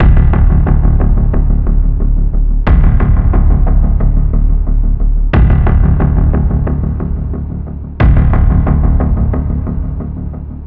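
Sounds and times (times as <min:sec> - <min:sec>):
spy music loop: 0:00.0 - 0:10.6.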